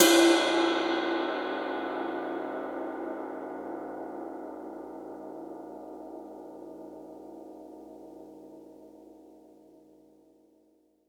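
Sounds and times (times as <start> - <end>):
ride cymbal: 0.0 - 3.2.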